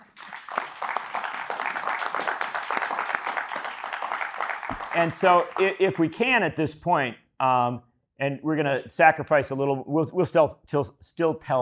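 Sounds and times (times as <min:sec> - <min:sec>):
audience applause: 0:00.0 - 0:06.1
speech: 0:05.0 - 0:11.6.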